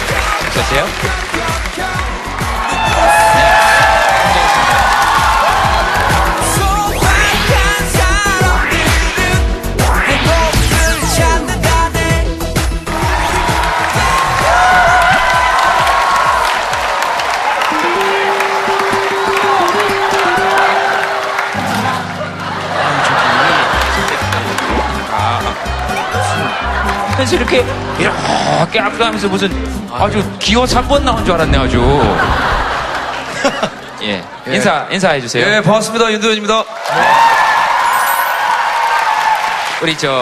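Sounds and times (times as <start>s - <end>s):
audience applause and cheering welcoming guest: 0.0s - 11.4s, 12.0s - 30.7s, 31.5s - 34.8s, 36.4s - 40.2s
speech: 0.6s - 2.0s, 27.3s - 32.5s, 34.0s - 37.2s, 39.8s - 40.2s
simple musical tune: 17.7s - 21.4s
laughter: 19.4s - 28.5s, 31.9s - 34.8s.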